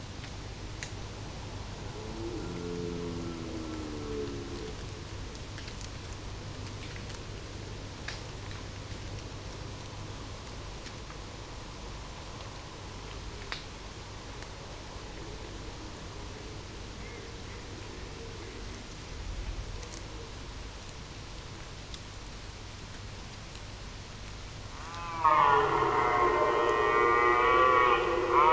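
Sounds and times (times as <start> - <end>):
faint ticks: 0.2 - 15.6, 17.0 - 26.8
red deer vocalizing: 24.7 - 28.5.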